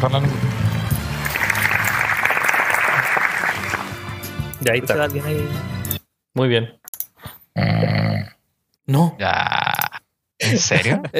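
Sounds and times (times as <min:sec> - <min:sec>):
speech: 0:00.0 - 0:00.5, 0:04.6 - 0:05.7, 0:06.4 - 0:06.8, 0:08.9 - 0:09.6, 0:10.5 - 0:11.1
small group applauding: 0:00.9 - 0:04.4
laughter: 0:01.4 - 0:03.9, 0:09.3 - 0:11.1.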